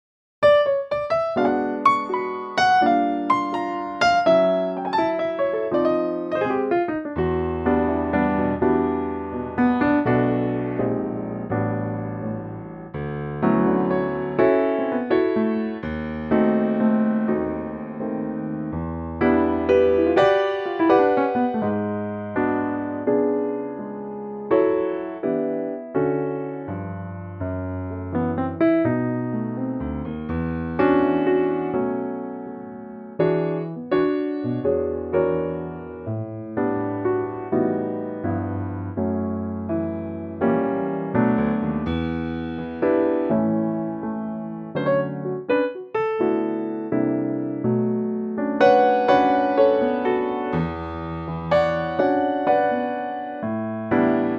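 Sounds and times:
piano in D: 0:00.4 - 0:54.3.

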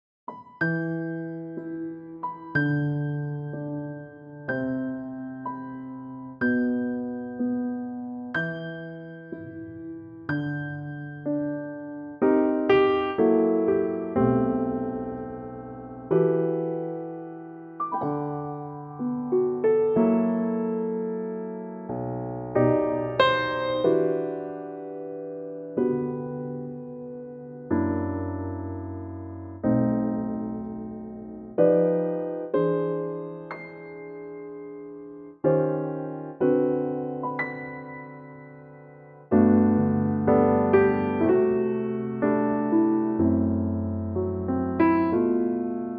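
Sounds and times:
piano in E minor: 0:00.3 - 0:45.9.

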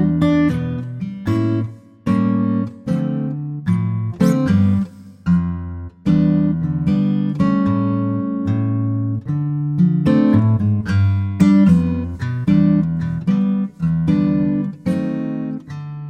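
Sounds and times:
acoustic guitar in C: 0:00.0 - 0:16.0.

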